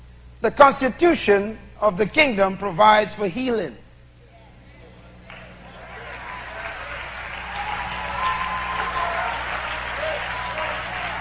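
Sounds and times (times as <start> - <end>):
speech: 0.4 - 3.8
audience clapping: 5.2 - 11.1.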